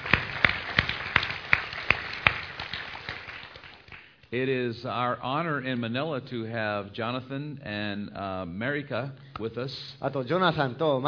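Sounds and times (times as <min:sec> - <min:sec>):
audience clapping: 0:00.0 - 0:04.3
speech: 0:04.3 - 0:11.0.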